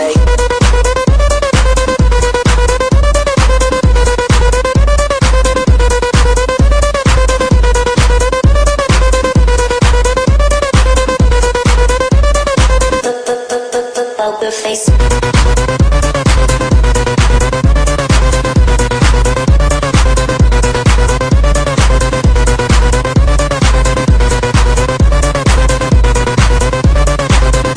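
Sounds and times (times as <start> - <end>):
electro club house mix ringtone: 0.2 - 27.7.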